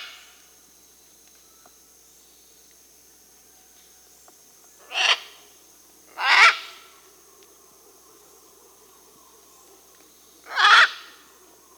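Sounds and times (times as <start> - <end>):
Scarlet Macaw Ara macao calling in Peru: 4.8 - 5.4, 6.1 - 7.0, 9.3 - 11.5.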